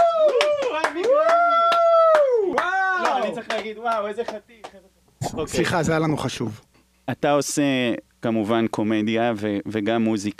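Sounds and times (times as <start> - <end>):
hand clapping: 0.0 - 4.8
speech: 3.7 - 10.3.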